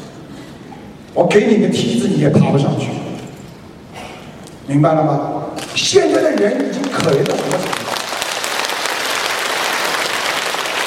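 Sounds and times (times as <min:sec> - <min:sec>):
speech: 0:01.2 - 0:03.0, 0:04.7 - 0:07.8
audience applause: 0:06.1 - 0:10.8.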